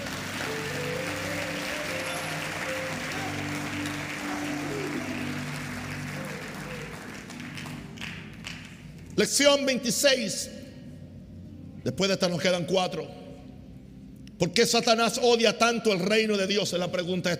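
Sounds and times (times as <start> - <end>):
loud audience applause: 0.0 - 9.1
speech: 9.2 - 10.6, 11.9 - 13.2, 14.4 - 17.3.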